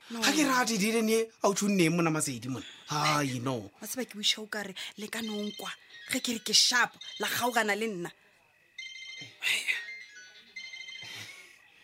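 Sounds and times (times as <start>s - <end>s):
speech: 0.1s - 8.2s, 9.4s - 9.8s
mobile phone ringing with melodic electronic ringtone: 5.2s - 7.6s, 8.8s - 11.8s.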